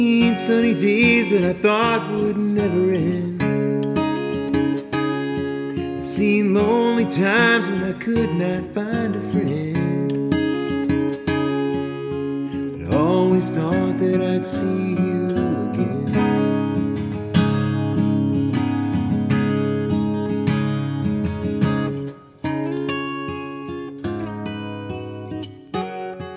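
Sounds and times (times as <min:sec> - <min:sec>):
acoustic guitar playing: 0:00.0 - 0:26.3.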